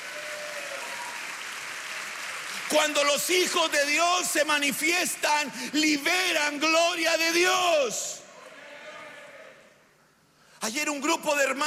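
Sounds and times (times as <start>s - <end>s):
audience clapping: 0.0s - 5.5s
speech: 2.7s - 8.2s, 10.6s - 11.6s.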